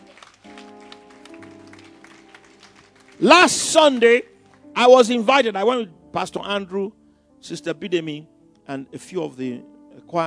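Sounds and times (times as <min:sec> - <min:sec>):
audience clapping: 0:00.0 - 0:04.9
speech: 0:03.2 - 0:10.2.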